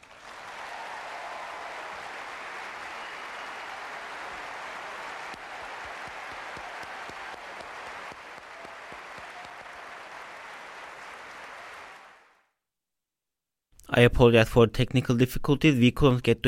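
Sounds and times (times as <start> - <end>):
audience applause: 0.0 - 12.4
speech: 14.0 - 16.4.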